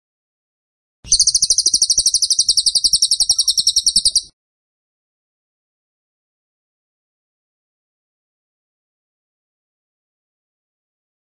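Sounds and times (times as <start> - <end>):
bird chirping: 1.1 - 4.3.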